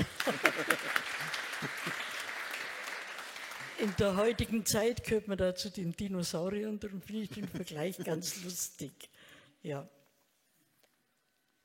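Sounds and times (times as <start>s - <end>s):
laughter: 0.0s - 2.4s
audience applause: 0.0s - 4.6s
speech: 3.8s - 10.0s.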